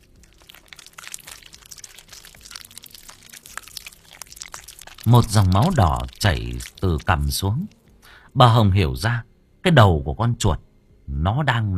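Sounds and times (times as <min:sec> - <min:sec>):
man chewing something with wet crunchy sounds: 0:00.0 - 0:08.1
speech: 0:05.0 - 0:07.8, 0:08.4 - 0:11.7.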